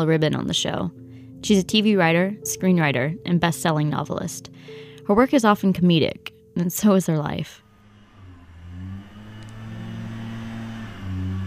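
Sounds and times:
speech: 0.0s - 7.6s
lawn mower running: 7.6s - 11.4s.

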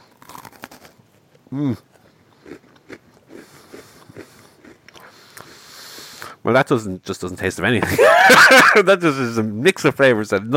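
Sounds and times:
chewing: 0.0s - 1.0s, 1.6s - 5.6s
lemon Oreo and mint chocolate chip Oreo cookies bitten together: 0.0s - 5.4s
speech: 1.5s - 1.9s, 6.5s - 10.5s.

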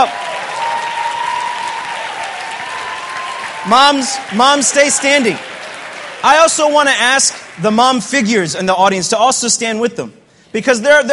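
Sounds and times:
audience applause: 0.0s - 8.3s
speech: 3.6s - 5.5s, 6.2s - 11.1s.

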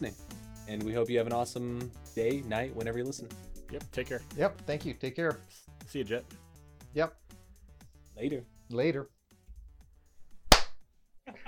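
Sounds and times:
speech: 0.0s - 7.2s, 8.2s - 9.2s
single hand clap: 10.5s - 10.8s.

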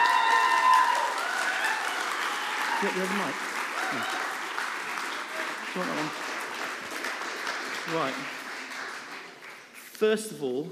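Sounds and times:
audience cheering: 0.0s - 6.2s
speech: 2.8s - 4.3s, 5.8s - 6.2s, 7.9s - 8.4s, 10.0s - 10.7s.

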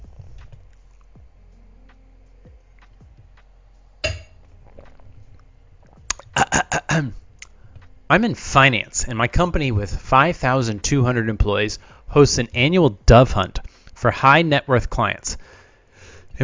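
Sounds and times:
glass clinking: 4.0s - 4.4s
sipping water: 4.0s - 8.0s
speech: 7.0s - 7.2s, 8.1s - 15.4s.

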